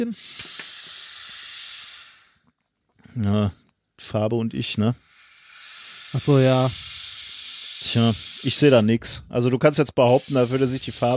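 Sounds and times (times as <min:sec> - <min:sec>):
speech: 0:00.0 - 0:00.5, 0:03.2 - 0:05.1, 0:06.1 - 0:06.8, 0:07.9 - 0:11.1
helium gas spraying from a nozzle: 0:00.0 - 0:02.4, 0:04.5 - 0:09.0, 0:10.0 - 0:11.1.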